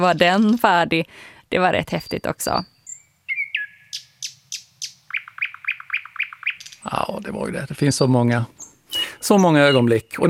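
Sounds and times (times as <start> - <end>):
speech: 0.0 - 2.7, 6.8 - 8.6, 9.2 - 10.2
nightingale singing: 1.9 - 7.2, 8.5 - 10.2.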